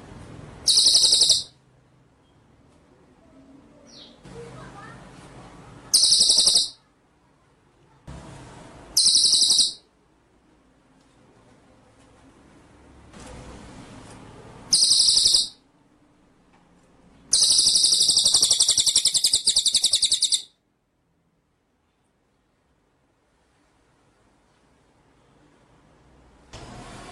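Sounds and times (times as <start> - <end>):
white-rumped shama song: 0.6 - 1.6, 5.9 - 6.8, 9.0 - 9.8, 14.7 - 15.6, 17.3 - 20.5.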